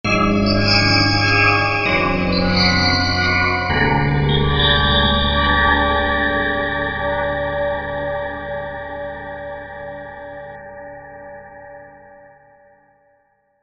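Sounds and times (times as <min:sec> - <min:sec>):
gong: 0:00.1 - 0:12.1.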